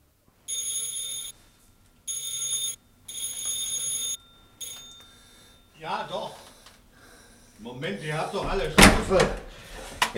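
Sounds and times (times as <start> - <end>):
doorbell ringing: 0.5 - 1.4, 2.1 - 6.5
speech: 5.8 - 6.4, 7.6 - 10.1.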